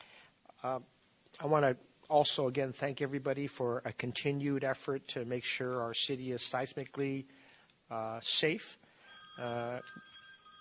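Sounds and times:
speech: 0:00.6 - 0:08.8, 0:09.4 - 0:10.1
bell ringing with a steady buzzing tone: 0:09.0 - 0:10.5.

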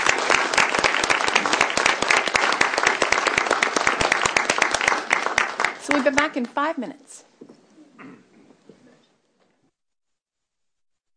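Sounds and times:
audience applause: 0:00.0 - 0:06.7
speech: 0:06.0 - 0:07.3.

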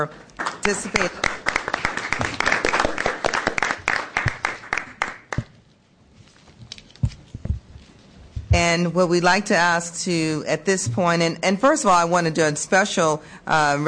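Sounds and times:
speech: 0:00.0 - 0:01.4, 0:08.6 - 0:13.8
audience applause: 0:00.4 - 0:05.4.

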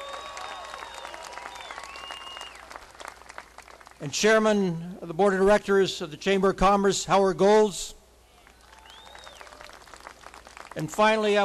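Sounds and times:
audience applause: 0:00.0 - 0:04.0, 0:08.6 - 0:10.8
whistle: 0:00.9 - 0:02.6
speech: 0:04.0 - 0:08.0, 0:10.8 - 0:11.4.

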